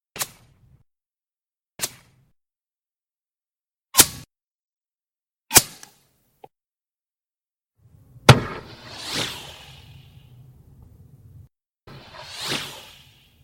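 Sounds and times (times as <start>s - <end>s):
bullet flying by: 0.1s - 0.6s, 1.8s - 2.3s, 4.0s - 4.3s, 5.5s - 6.0s, 8.1s - 10.5s, 11.9s - 13.4s.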